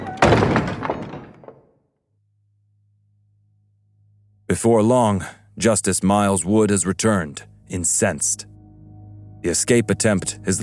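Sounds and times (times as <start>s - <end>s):
heavy stockade door slamming: 0.0s - 1.6s
speech: 4.5s - 8.6s, 9.4s - 10.6s.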